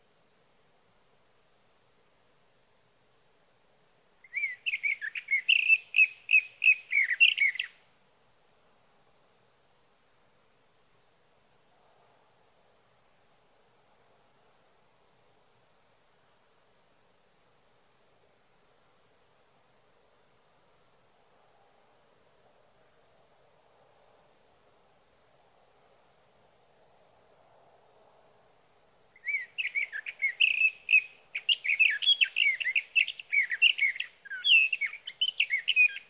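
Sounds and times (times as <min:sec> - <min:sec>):
sage thrasher: 0:04.3 - 0:07.7, 0:29.2 - 0:36.0.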